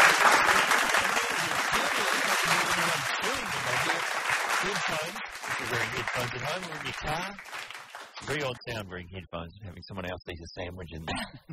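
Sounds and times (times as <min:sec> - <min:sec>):
audience applause: 0:00.0 - 0:08.6
speech: 0:06.2 - 0:07.6, 0:08.2 - 0:11.5.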